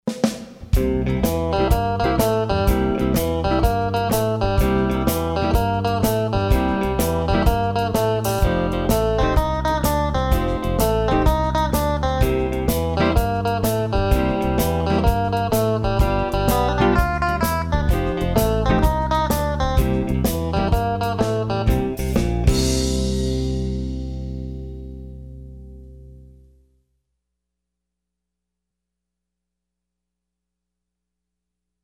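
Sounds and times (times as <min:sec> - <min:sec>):
classic rock boogie music: 0:00.2 - 0:24.9.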